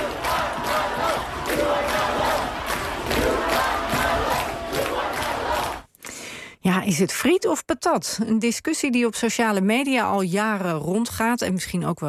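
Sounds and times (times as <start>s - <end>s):
crowd of demonstrators and sympathisers chanting: 0.0s - 5.9s
speech: 6.7s - 12.0s.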